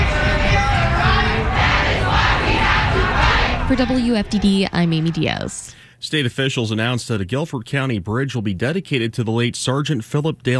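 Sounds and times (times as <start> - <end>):
protest march crowd yelling and chanting: 0.0 - 5.7
speech: 3.8 - 10.5.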